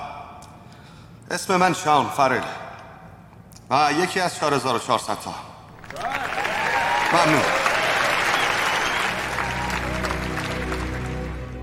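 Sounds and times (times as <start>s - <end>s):
speech: 1.3s - 2.6s, 3.7s - 6.0s, 7.1s - 7.6s
audience applause: 5.7s - 11.6s.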